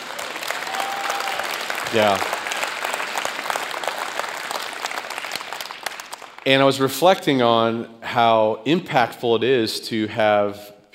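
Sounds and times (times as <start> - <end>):
audience clapping: 0.0 - 7.3
speech: 1.9 - 2.4, 6.4 - 10.7.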